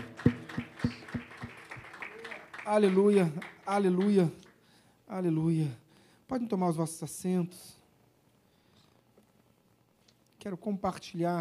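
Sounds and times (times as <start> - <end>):
rhythmic applause: 0.0 - 4.6
speech: 2.7 - 4.4, 5.1 - 7.8, 10.4 - 11.3.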